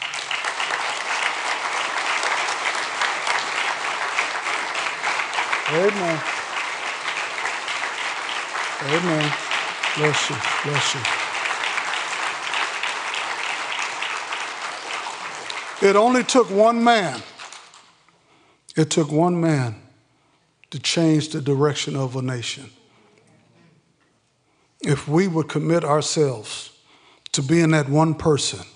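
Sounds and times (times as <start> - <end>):
audience applause: 0.0 - 17.8
speech: 5.7 - 6.4, 8.8 - 9.4, 10.0 - 11.2, 15.8 - 17.3, 18.8 - 19.8, 20.7 - 22.8, 24.8 - 26.7, 27.4 - 28.7.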